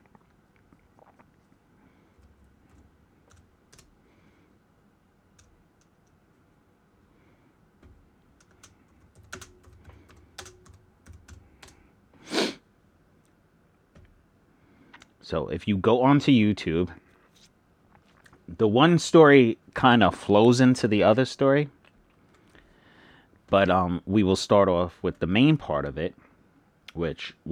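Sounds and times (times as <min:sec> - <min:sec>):
typing on a computer keyboard: 0:02.1 - 0:04.0, 0:05.3 - 0:06.2, 0:07.8 - 0:11.8
speech: 0:15.3 - 0:17.0, 0:18.6 - 0:21.8, 0:23.5 - 0:26.2, 0:26.9 - 0:27.5.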